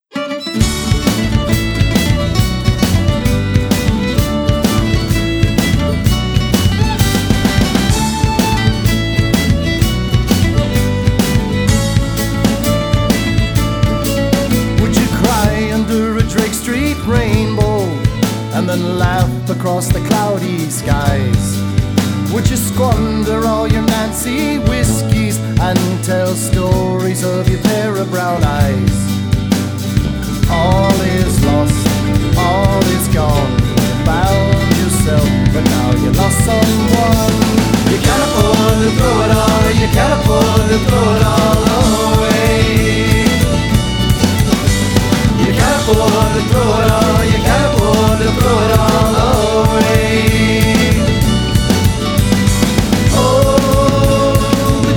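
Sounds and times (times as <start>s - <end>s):
Irish band playing: 0.0s - 54.9s.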